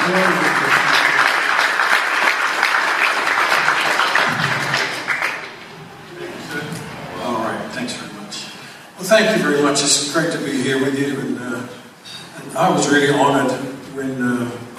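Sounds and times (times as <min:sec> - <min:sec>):
audience applause: 0:00.0 - 0:07.7
speech: 0:00.1 - 0:00.6, 0:09.2 - 0:11.8, 0:12.6 - 0:14.6.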